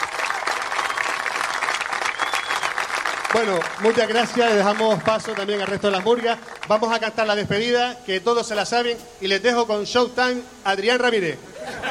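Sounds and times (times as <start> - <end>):
audience applause: 0.0 - 7.0
speech: 3.3 - 11.5
laughter: 11.5 - 11.8.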